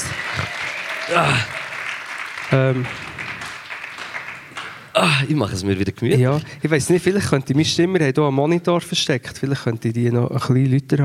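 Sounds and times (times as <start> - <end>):
audience clapping: 0.0 - 5.2
speech: 1.1 - 1.6, 2.5 - 3.1, 5.0 - 11.0.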